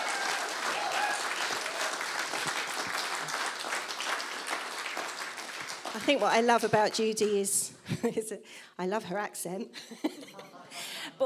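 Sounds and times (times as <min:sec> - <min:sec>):
audience applause welcoming a speaker after a church worship set: 0:00.0 - 0:06.5
speech: 0:06.0 - 0:10.1.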